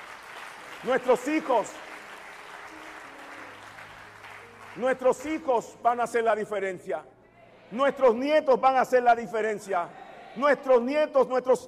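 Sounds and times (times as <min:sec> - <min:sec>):
audience applause: 0:00.0 - 0:05.5
speech: 0:00.8 - 0:01.9, 0:04.8 - 0:11.6.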